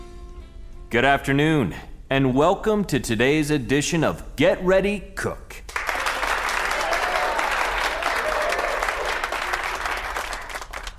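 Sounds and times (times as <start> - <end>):
speech: 0.9 - 5.7
studio audience applause: 5.7 - 10.9.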